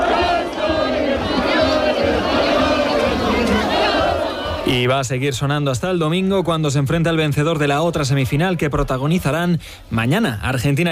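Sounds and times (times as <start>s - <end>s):
crowds across Spain cheering a World Cup semifinal win: 0.0s - 4.8s
speech: 4.8s - 10.9s.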